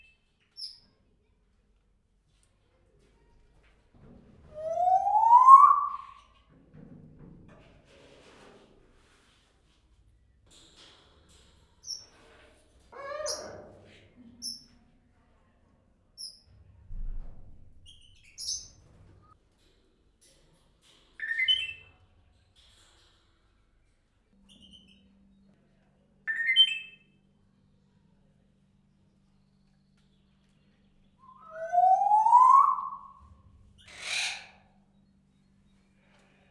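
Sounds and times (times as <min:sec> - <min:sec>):
grey parrot calling in a zoo: 0:04.5 - 0:06.2, 0:12.9 - 0:13.8, 0:31.3 - 0:33.1, 0:33.8 - 0:34.6.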